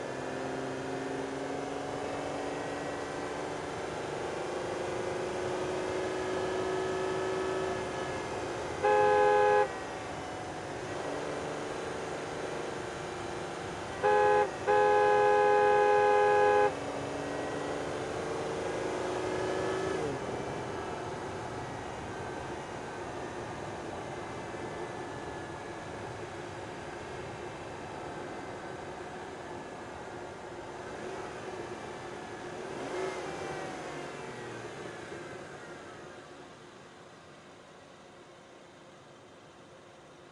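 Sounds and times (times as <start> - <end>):
Aston Martin DB9 driving and reversing: 0.0 - 35.8
Aston Martin DB9 horn: 8.8 - 9.9, 13.9 - 16.8.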